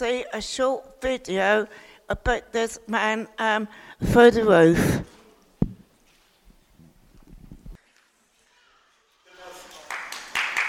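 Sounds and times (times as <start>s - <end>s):
speech: 0.0s - 5.2s
low uneven thumps: 5.6s - 5.8s
crowd clapping: 9.5s - 10.6s.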